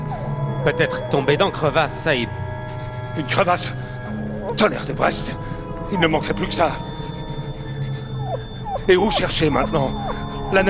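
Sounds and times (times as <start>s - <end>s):
dog whimpering in the snow: 0.0s - 1.8s, 5.9s - 10.6s
speech: 0.6s - 2.4s, 3.2s - 6.9s, 8.8s - 10.6s.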